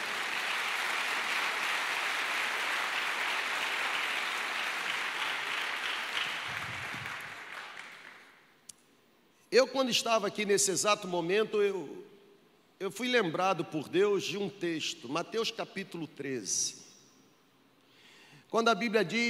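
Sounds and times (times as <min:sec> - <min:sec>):
audience applauding loudly: 0:00.0 - 0:08.4
speech: 0:09.5 - 0:12.1, 0:12.8 - 0:16.8, 0:18.5 - 0:19.2.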